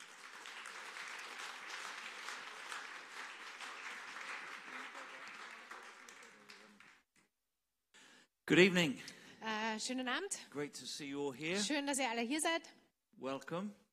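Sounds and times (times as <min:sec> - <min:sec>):
audience applause: 0:00.0 - 0:07.1
speech: 0:08.5 - 0:09.2, 0:09.8 - 0:13.8.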